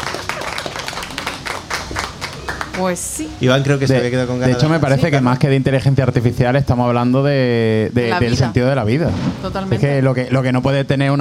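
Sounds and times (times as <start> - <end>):
spontaneous audience applause: 0.0 - 3.2
speech: 2.8 - 11.1.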